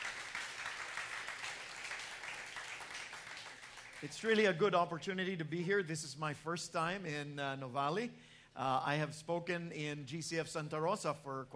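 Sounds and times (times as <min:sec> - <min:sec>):
audience applause: 0:00.0 - 0:04.1
speech: 0:04.0 - 0:11.5.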